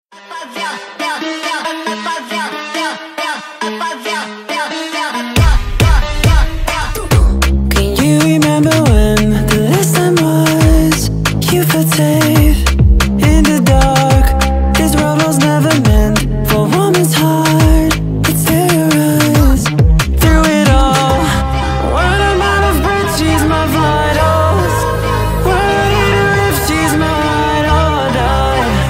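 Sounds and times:
nightcore male vocal song: 0.1 - 28.8.

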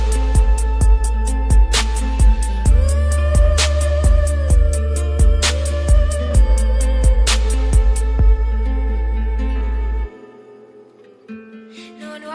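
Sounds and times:
bass boosted music: 0.0 - 10.1.

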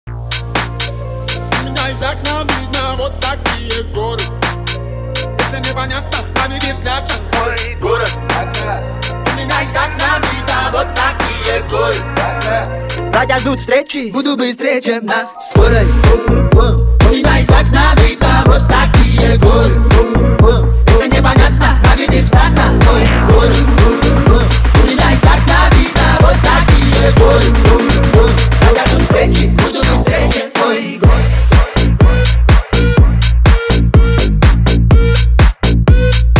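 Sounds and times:
radio remix: 0.1 - 36.3.

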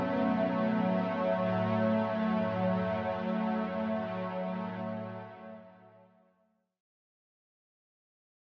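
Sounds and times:
slowed muffled music with reverb: 0.0 - 5.2.

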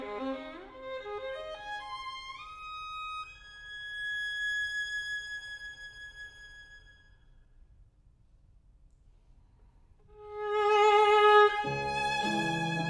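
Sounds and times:
violin playing a nocturne: 0.0 - 7.5, 10.0 - 12.8
piano playing a nocturne: 10.4 - 12.8.

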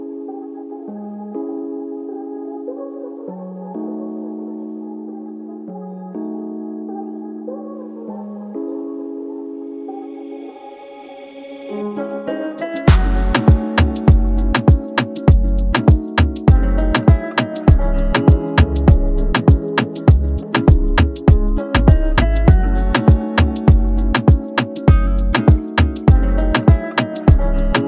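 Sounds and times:
Afrobeat and Latino style instrumental beat: 12.3 - 27.8.

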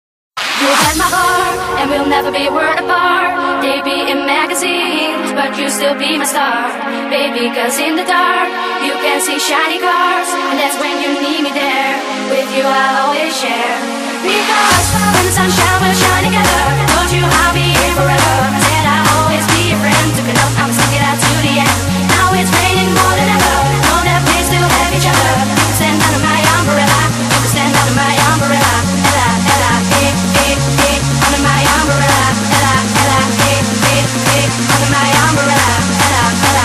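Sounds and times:
techno remix: 0.4 - 36.6.

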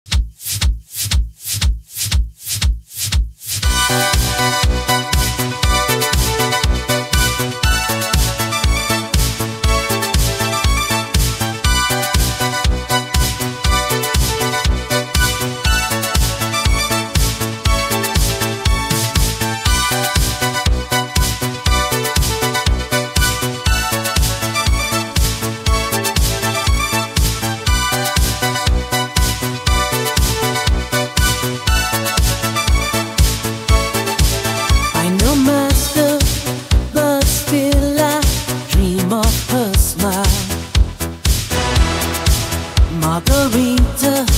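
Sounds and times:
80s style disco music: 0.1 - 44.3.

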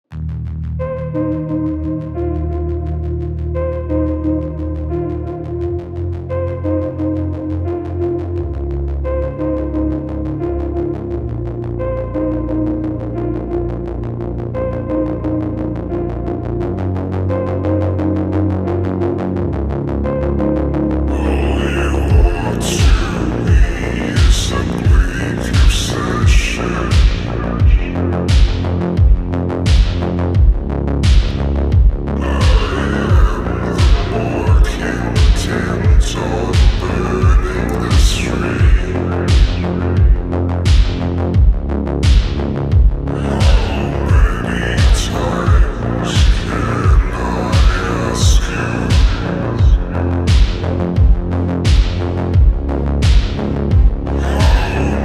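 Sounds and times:
slowed reverb music: 0.1 - 55.0.

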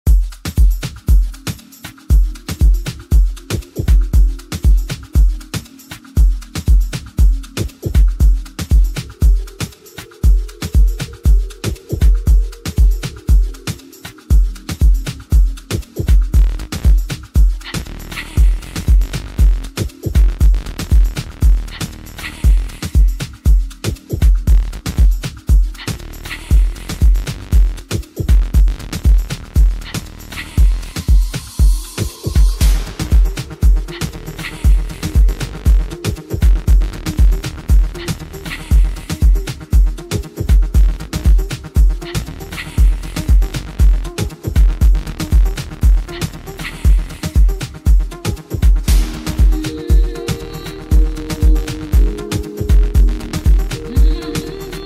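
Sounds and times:
afro three-step remix: 0.1 - 54.8.

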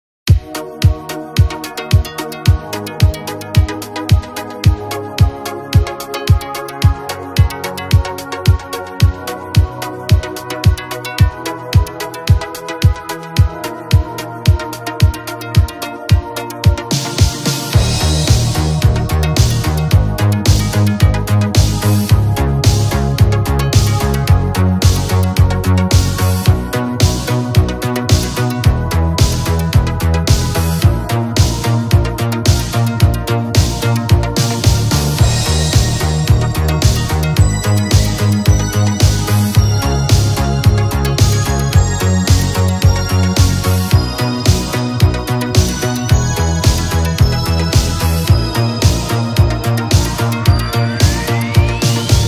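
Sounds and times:
1980s disco music: 0.3 - 52.2.

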